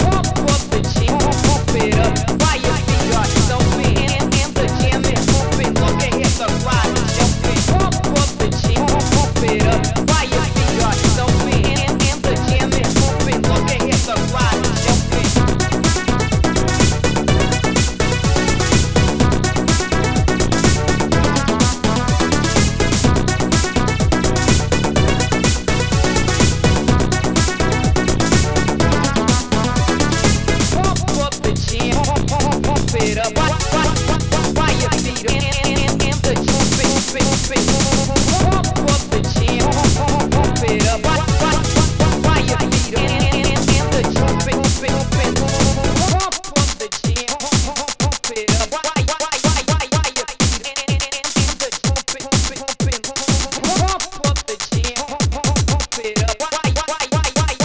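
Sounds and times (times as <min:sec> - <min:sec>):
Amiga house music mix: 0:00.0 - 0:57.6.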